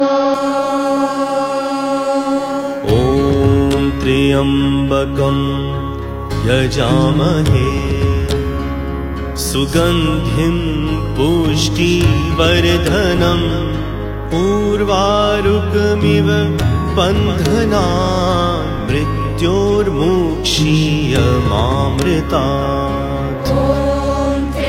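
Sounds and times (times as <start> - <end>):
mantra chanting: 0.0 - 8.4, 9.5 - 24.5.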